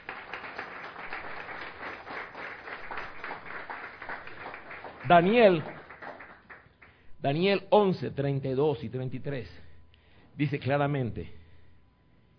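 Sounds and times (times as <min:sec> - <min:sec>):
audience applause: 0:00.0 - 0:07.0
speech: 0:05.1 - 0:05.8, 0:07.2 - 0:09.6, 0:10.4 - 0:11.4.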